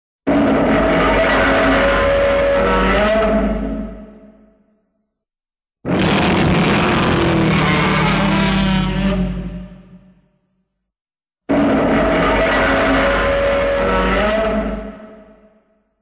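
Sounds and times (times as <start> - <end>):
roar: 0.3 - 4.4, 5.8 - 10.1, 11.5 - 15.5.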